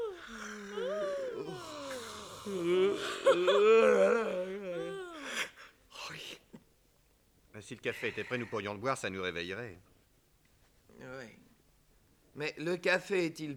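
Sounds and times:
person yawning loudly: 0:00.0 - 0:05.6
speech: 0:02.5 - 0:04.4, 0:07.7 - 0:09.9, 0:12.4 - 0:13.5.

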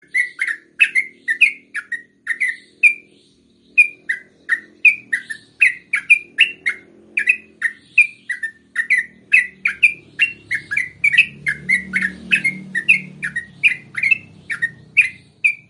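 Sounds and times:
yellow-vented bulbul singing: 0:00.0 - 0:15.6.

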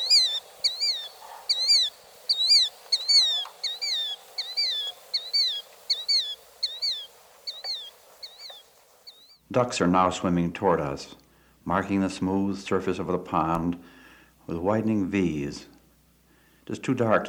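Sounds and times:
killdeer calling overhead: 0:00.0 - 0:09.4
speech: 0:09.5 - 0:15.7, 0:16.7 - 0:17.2.

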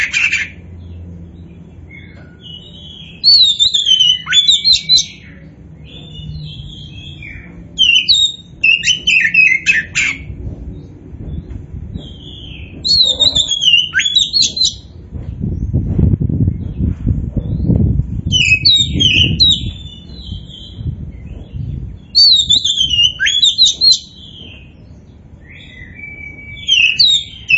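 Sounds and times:
Oriental magpie-robin singing: 0:00.0 - 0:15.0, 0:17.5 - 0:27.5
low background rumble: 0:00.0 - 0:27.5.

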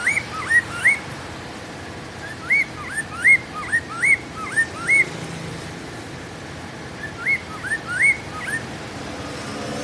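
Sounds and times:
bird whistling: 0:00.0 - 0:01.1, 0:02.2 - 0:05.1, 0:07.0 - 0:08.7.

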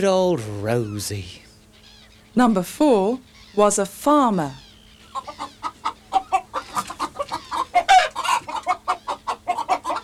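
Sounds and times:
speech: 0:00.0 - 0:01.4, 0:02.4 - 0:04.6
hen clucking: 0:00.6 - 0:10.0.

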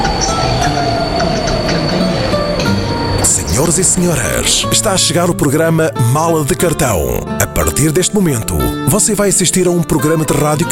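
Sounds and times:
train metallic wheel squeal: 0:00.0 - 0:05.2
intercity long-distance train rumbling by: 0:00.0 - 0:05.4
speech: 0:03.6 - 0:10.6.

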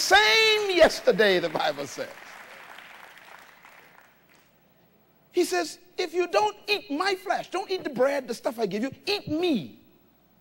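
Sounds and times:
congregation clapping in praise of God during a church service: 0:00.0 - 0:04.6
speech: 0:00.1 - 0:02.3, 0:05.3 - 0:09.8.

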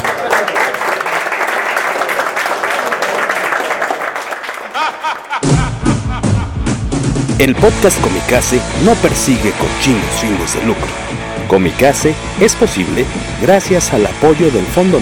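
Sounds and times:
audience applause: 0:00.0 - 0:05.4
laughter: 0:04.3 - 0:06.7
speech: 0:07.4 - 0:14.9.

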